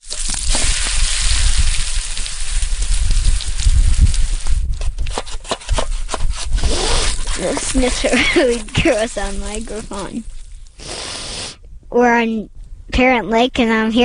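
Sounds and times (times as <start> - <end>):
pancakes sizzling in a hot pan: 0.0 - 4.6
clicks and scrapes: 4.8 - 10.1
speech: 7.7 - 10.4, 11.9 - 14.0.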